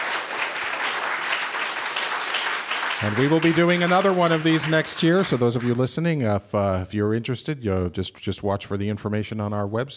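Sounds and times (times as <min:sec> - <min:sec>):
audience applause: 0:00.0 - 0:05.9
speech: 0:03.0 - 0:09.9.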